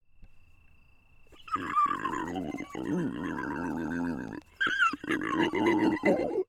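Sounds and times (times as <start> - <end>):
pig screaming: 1.4 - 6.4.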